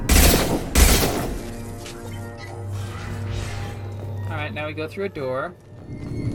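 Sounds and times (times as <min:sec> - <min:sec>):
video game gunfire: 0:00.1 - 0:01.6
speech: 0:04.5 - 0:06.3.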